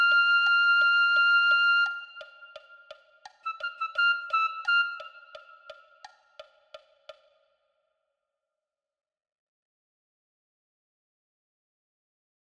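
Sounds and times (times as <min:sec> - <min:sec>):
flute: 0:00.0 - 0:06.1.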